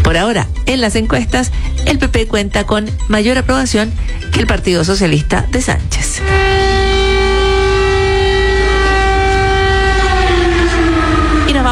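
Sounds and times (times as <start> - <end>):
low rumble: 0.0 - 11.7
speech: 0.1 - 6.8
air raid sirens wailing: 3.8 - 11.7.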